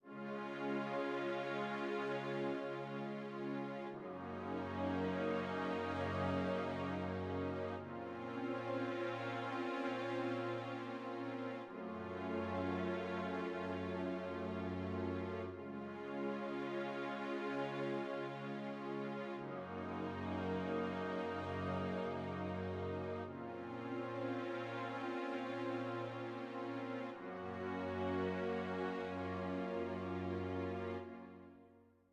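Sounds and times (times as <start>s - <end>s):
interactive music: 0.0s - 32.1s.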